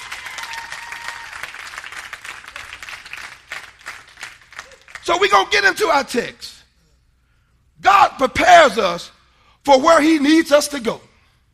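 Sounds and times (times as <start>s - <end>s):
audience clapping: 0.0s - 5.2s
speech: 5.0s - 6.5s, 7.8s - 11.1s.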